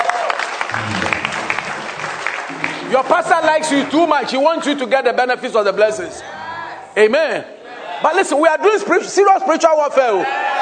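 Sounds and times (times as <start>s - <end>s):
audience applause: 0.0s - 4.1s
speech: 2.9s - 6.4s, 7.0s - 10.4s.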